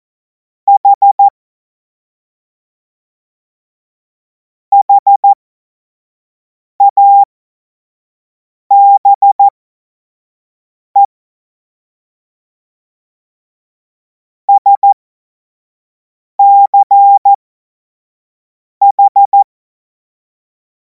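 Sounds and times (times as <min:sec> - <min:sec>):
CW Morse code beeps: 0:00.7 - 0:01.3, 0:04.7 - 0:05.4, 0:06.8 - 0:07.3, 0:08.7 - 0:09.5, 0:14.6 - 0:15.0, 0:16.4 - 0:17.4, 0:18.8 - 0:19.4.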